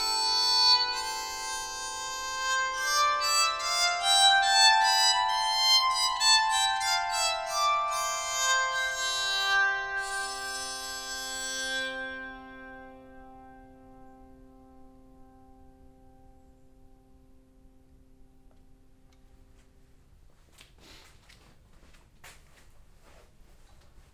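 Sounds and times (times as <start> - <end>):
redwood walnut tenor bowed psaltery: 0.0 - 19.1.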